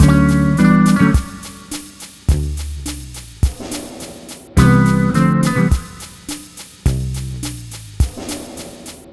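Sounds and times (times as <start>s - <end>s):
multiple guitars playing bossa nova: 0.0s - 2.1s, 4.6s - 6.3s.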